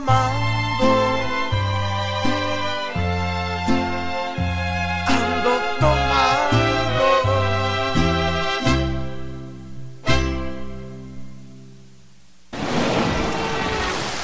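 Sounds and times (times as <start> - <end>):
tonal music with sharp plucked chord strikes: 0.0 - 11.8
pouring rain: 12.0 - 14.2.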